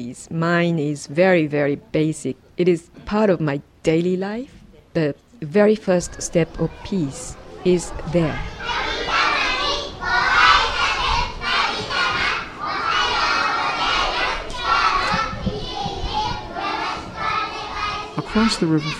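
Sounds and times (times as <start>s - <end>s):
speech: 0.0s - 8.8s, 18.4s - 18.9s
children chattering and shouting in school garden: 5.8s - 18.9s.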